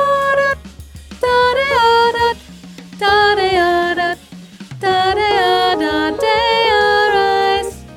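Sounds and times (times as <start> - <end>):
soprano voice: 0.0 - 0.6, 1.2 - 2.4, 3.0 - 4.2, 4.8 - 7.9.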